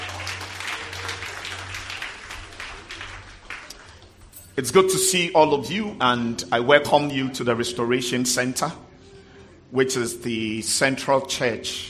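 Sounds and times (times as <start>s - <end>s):
audience clapping: 0.0s - 4.3s
speech: 4.6s - 8.9s, 9.7s - 11.8s.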